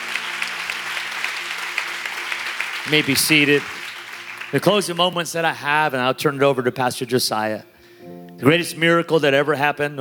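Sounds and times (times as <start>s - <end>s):
church congregation clapping during a service: 0.0s - 5.6s
speech: 2.8s - 3.8s, 4.5s - 9.9s.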